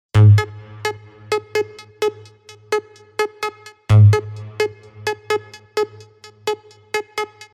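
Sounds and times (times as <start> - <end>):
synth: 0.2 - 7.5.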